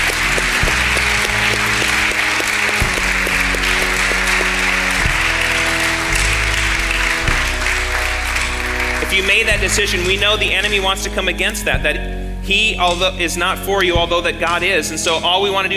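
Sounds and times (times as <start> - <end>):
audience applause: 0.0 - 10.6
sustained keyboard chords: 0.0 - 15.7
speech: 9.2 - 15.7.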